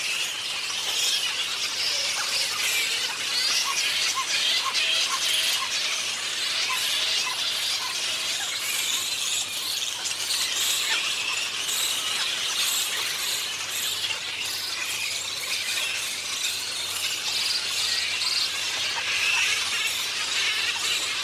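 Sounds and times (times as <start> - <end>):
grey-headed flying fox colony: 0.0 - 21.2.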